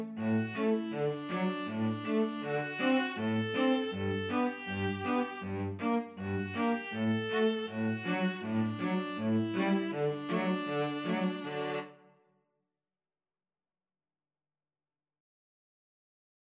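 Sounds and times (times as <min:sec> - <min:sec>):
string trio playing: 0:00.0 - 0:12.0.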